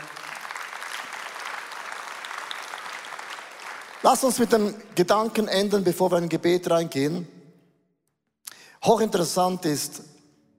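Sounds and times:
audience applause: 0.0 - 4.5
speech: 4.0 - 7.4, 8.8 - 10.1.

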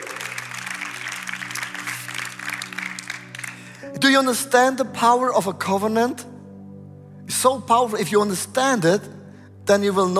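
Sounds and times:
audience applause: 0.0 - 3.8
speech: 3.9 - 6.3, 7.4 - 10.1.

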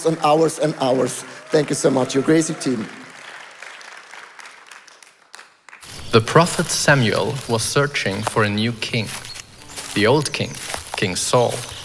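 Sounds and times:
speech: 0.0 - 3.0, 6.1 - 9.3, 10.0 - 11.8
audience applause: 0.0 - 8.8.

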